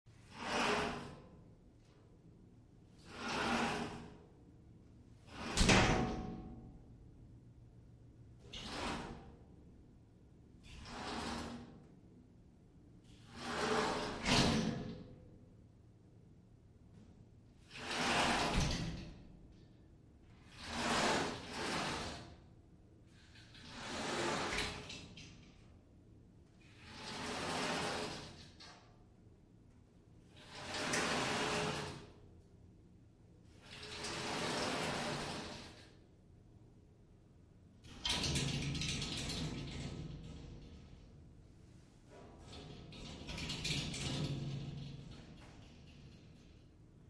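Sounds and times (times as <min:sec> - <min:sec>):
glass shower door sliding: 0:00.2 - 0:01.2, 0:03.0 - 0:04.2, 0:05.2 - 0:06.3, 0:08.4 - 0:09.3, 0:10.6 - 0:11.8, 0:13.0 - 0:14.9, 0:17.6 - 0:19.2, 0:20.4 - 0:22.3, 0:23.3 - 0:25.1, 0:26.7 - 0:28.6, 0:30.4 - 0:32.1, 0:33.6 - 0:35.9, 0:37.9 - 0:41.0, 0:42.1 - 0:46.6.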